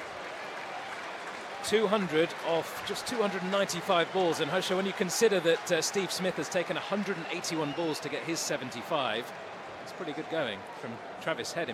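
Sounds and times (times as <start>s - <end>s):
applause from the dressing room: 0.0s - 11.7s
speech: 1.6s - 11.7s.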